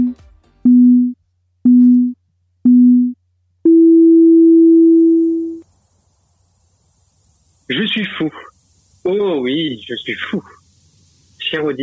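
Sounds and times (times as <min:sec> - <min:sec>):
longer higher-pitched electronic tone signalling start of timer: 0:00.0 - 0:05.6
speech: 0:07.9 - 0:10.6, 0:11.5 - 0:11.8.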